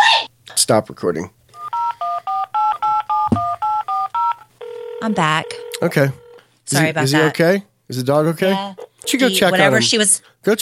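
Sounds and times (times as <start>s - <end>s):
speech: 0.7s - 1.4s, 5.0s - 10.6s
telephone keypad dialing tones: 1.6s - 6.4s.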